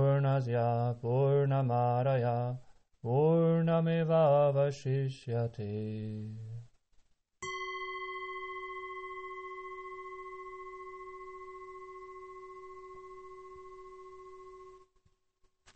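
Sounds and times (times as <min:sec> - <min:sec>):
mantra chant: 0:00.0 - 0:06.6.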